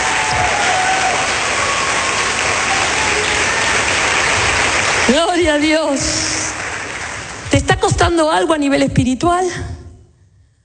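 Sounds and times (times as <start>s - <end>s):
audience applauding: 0.0s - 7.6s
speech: 5.1s - 6.3s, 7.8s - 9.8s.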